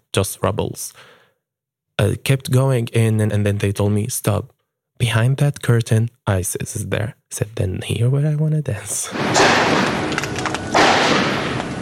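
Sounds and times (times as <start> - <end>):
speech: 0.2 - 1.2, 2.0 - 10.4
gunfire: 9.1 - 11.8.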